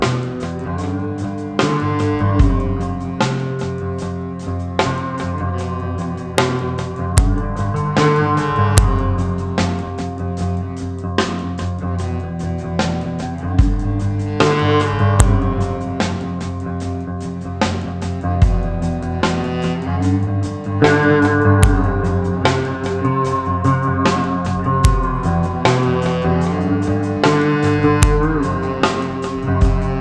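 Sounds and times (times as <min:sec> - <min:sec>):
rock music: 0:00.0 - 0:29.9.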